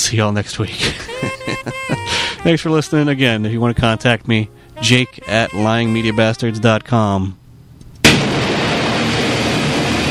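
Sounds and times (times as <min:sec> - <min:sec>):
speech: 0:00.0 - 0:07.4
laughter: 0:00.7 - 0:02.4
thunder crack and rumble: 0:08.1 - 0:10.0.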